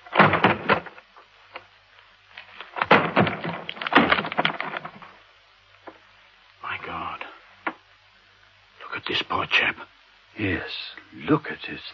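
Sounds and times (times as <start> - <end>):
wooden door being broken down: 0.0 - 1.1, 2.7 - 5.2
speech: 10.4 - 11.9.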